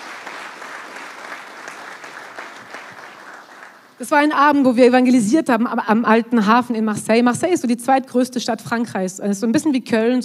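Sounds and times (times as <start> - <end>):
audience applause: 0.0 - 4.0
speech: 4.0 - 10.2.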